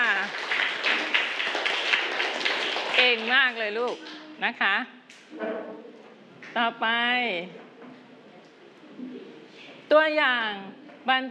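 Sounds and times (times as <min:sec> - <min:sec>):
children clapping for a student group in a classroom: 0:00.0 - 0:04.3
speech: 0:03.1 - 0:05.9, 0:06.5 - 0:07.6, 0:09.9 - 0:11.2.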